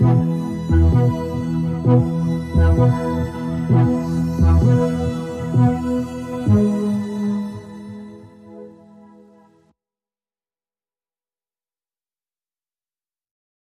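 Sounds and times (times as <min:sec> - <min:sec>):
Moog synthesizer bass: 0:00.0 - 0:09.5.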